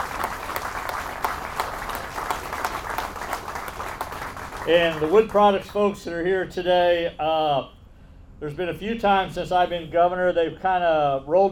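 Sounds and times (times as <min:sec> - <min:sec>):
audience applause: 0:00.0 - 0:05.6
speech: 0:04.7 - 0:07.8, 0:08.4 - 0:11.4.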